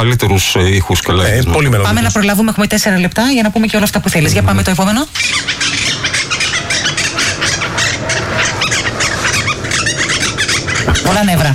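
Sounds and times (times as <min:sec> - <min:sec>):
speech: 0:00.0 - 0:05.8, 0:11.1 - 0:11.5
monk parakeets calling in Athens: 0:04.0 - 0:11.5.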